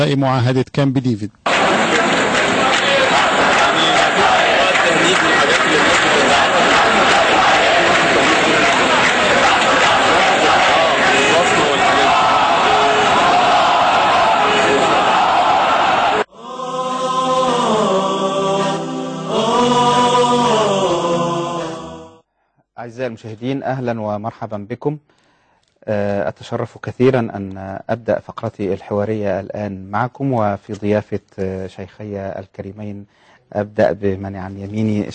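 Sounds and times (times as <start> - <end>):
speech: 0.0 - 1.6, 22.8 - 25.2, 25.8 - 35.1
protesters chanting slogans: 1.5 - 22.2.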